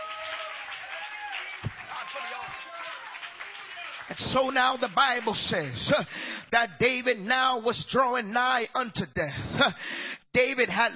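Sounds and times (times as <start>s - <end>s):
audience clapping: 0.0s - 6.2s
speech: 4.1s - 10.9s.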